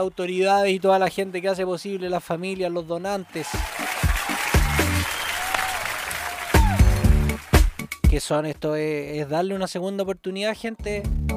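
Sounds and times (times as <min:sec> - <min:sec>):
speech: 0:00.0 - 0:03.8, 0:08.2 - 0:11.3
audience applause: 0:02.7 - 0:07.9.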